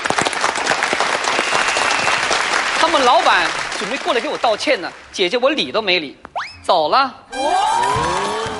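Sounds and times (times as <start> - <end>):
audience applause: 0.0 - 5.2, 7.7 - 8.5
speech: 3.0 - 8.1.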